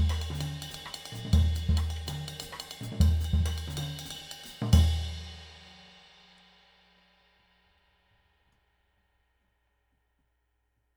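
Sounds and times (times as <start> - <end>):
14-inch Paiste cymbal: 0.0 - 8.4.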